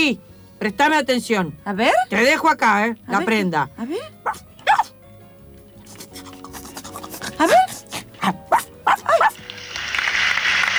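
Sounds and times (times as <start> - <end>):
speech: 0.0 - 4.5
dog giving high yappy barks: 4.2 - 5.0, 6.0 - 9.4.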